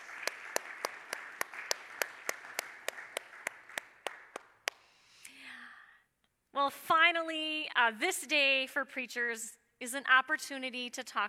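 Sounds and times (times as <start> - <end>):
audience applause: 0.0 - 4.8
one sharp steady clapper: 0.0 - 4.9
speech: 6.6 - 11.2.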